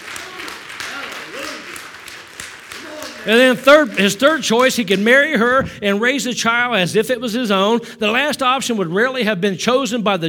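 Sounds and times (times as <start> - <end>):
audience hand clapping: 0.0 - 5.2
speech: 3.2 - 10.2.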